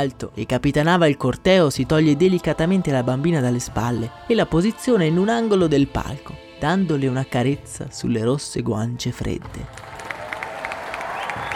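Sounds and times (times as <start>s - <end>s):
speech: 0.0s - 9.9s
crowd ovation with applause: 9.7s - 11.5s.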